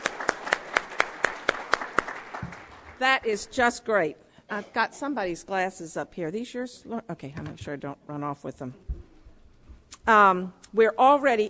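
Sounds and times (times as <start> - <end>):
audience clapping at a meeting thanking donors: 0.0 - 3.1
speech: 3.0 - 8.9, 10.1 - 11.4.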